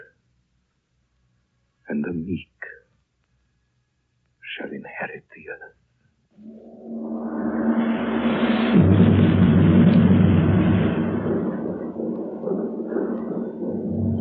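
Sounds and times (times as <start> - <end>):
speech: 1.9 - 2.8, 4.6 - 5.8, 6.4 - 7.3
thunder of an approaching storm: 6.4 - 14.2.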